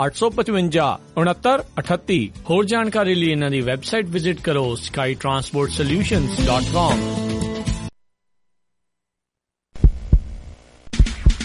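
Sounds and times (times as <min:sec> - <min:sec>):
speech: 0:00.0 - 0:07.3
heartbeat sound effect in a Punjabi Radio USA station jingle: 0:09.8 - 0:11.4.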